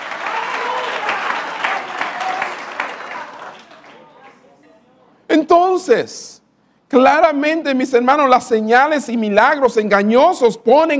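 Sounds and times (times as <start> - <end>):
audience applause: 0.0 - 4.4
speech: 5.5 - 10.9.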